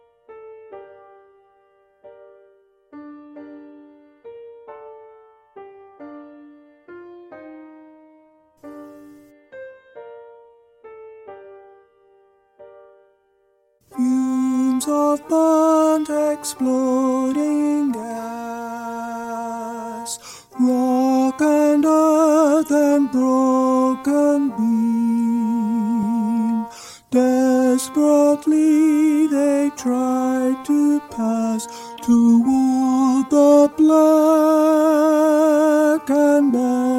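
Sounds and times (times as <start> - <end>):
alto voice singing in G minor: 13.9 - 36.9.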